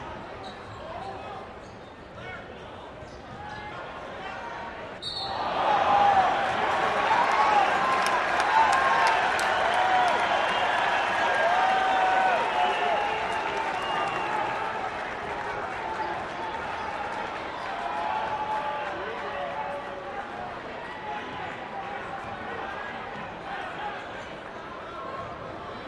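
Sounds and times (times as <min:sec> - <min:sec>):
gym crowd cheering: 0:05.1 - 0:24.3.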